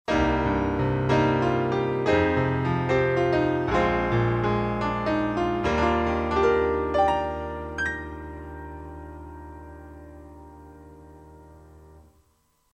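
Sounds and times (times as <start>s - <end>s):
Bösendorfer 290 grand piano through UA 476p compressor: 0.1s - 12.7s.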